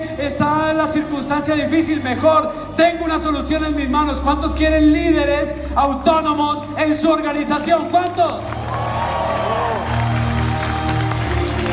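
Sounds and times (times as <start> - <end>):
speech: 0.2 - 9.1
audience applause: 8.3 - 11.7.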